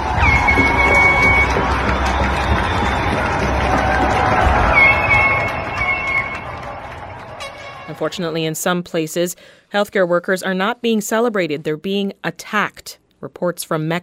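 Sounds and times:
shrill whistles: 0.0 - 7.9
crowd cheering for healthcare workers: 0.0 - 8.4
speech: 8.0 - 14.0.

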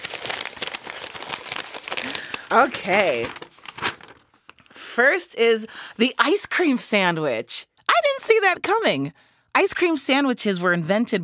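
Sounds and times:
paper envelope being opened: 0.0 - 4.7
speech: 2.5 - 3.4, 5.0 - 11.2.

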